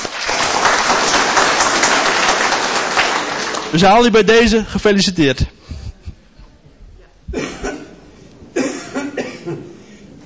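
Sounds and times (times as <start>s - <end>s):
applause for a woman's 79th birthday: 0.0s - 4.1s
speech: 3.7s - 5.8s.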